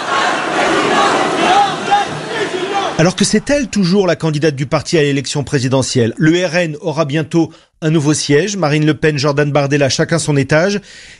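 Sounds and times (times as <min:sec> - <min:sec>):
crowd chanting a political slogan: 0:00.0 - 0:03.7
speech: 0:03.0 - 0:11.1.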